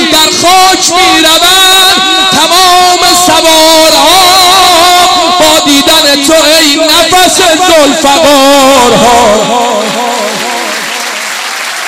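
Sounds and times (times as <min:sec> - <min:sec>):
person singing: 0:00.0 - 0:11.2
audience clapping at a religious chanting gathering: 0:09.3 - 0:11.8.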